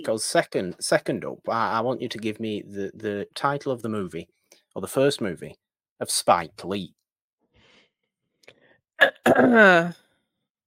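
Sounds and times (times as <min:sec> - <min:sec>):
speech: 0:00.0 - 0:07.0, 0:09.0 - 0:10.0
cough into the microphone: 0:09.0 - 0:09.7.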